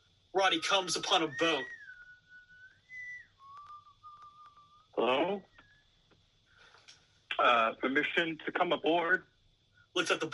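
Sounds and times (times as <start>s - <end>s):
speech: 0.4s - 1.8s, 7.4s - 9.3s, 10.0s - 10.3s
eerie whistle signifying danger: 0.4s - 5.9s.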